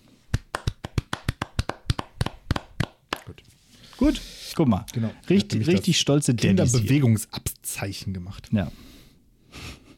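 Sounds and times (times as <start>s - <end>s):
hands clapping: 0.3s - 3.4s
speech: 4.0s - 8.9s.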